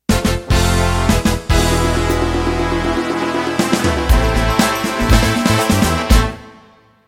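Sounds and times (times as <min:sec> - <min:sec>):
Motown music ending: 0:00.1 - 0:07.0.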